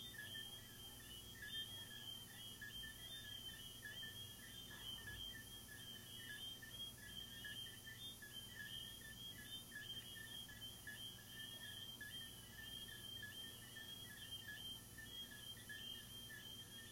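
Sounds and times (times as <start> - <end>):
pulsing cricket chorus: 0.0 - 16.9.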